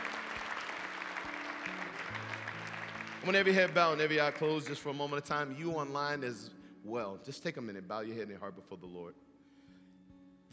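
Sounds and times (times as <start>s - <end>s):
audience hand clapping applause: 0.0s - 5.4s
speech: 3.2s - 9.2s.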